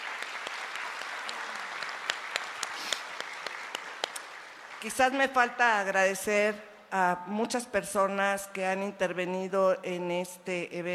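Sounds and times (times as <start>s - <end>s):
audience applause: 0.0s - 5.1s
speech: 4.8s - 10.9s.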